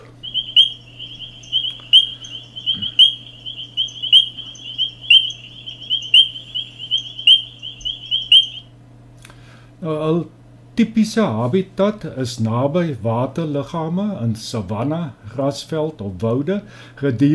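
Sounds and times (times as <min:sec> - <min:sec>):
painted reed frog chorus calling: 0:00.0 - 0:08.6
speech: 0:09.8 - 0:17.3.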